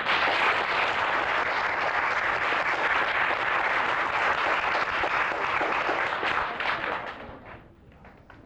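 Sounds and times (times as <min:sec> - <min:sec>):
audience applause: 0:00.0 - 0:08.3.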